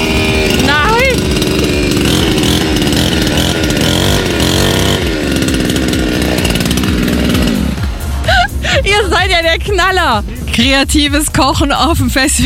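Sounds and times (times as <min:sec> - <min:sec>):
chainsaw running: 0:00.0 - 0:10.6
speech: 0:10.0 - 0:12.4.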